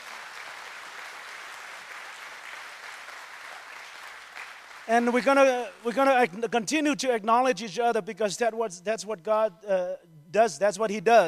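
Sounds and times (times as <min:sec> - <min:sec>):
audience applause: 0:00.0 - 0:05.9
speech: 0:04.9 - 0:11.2.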